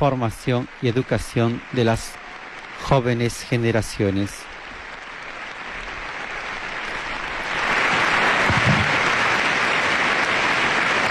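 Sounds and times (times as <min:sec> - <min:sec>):
speech: 0:00.0 - 0:02.2, 0:02.8 - 0:04.5
long applause from assembly members: 0:00.0 - 0:11.0.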